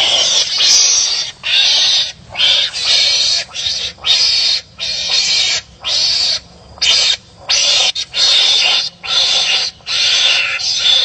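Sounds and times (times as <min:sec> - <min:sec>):
mongoose giving raspy hissing calls: 0:00.0 - 0:11.0.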